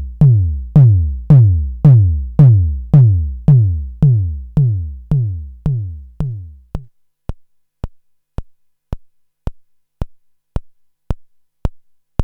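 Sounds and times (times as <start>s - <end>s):
AVP synth bass drum: 0.0s - 6.9s.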